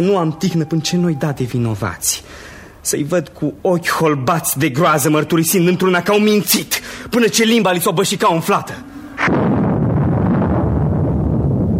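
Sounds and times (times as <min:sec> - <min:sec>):
speech: 0:00.0 - 0:09.6
thunderclap in winter: 0:09.0 - 0:11.7.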